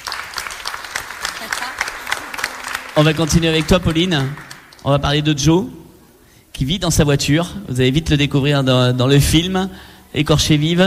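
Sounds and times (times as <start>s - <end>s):
audience applauding at a film presentation: 0.0s - 5.2s
speech: 3.0s - 5.8s, 6.6s - 10.8s.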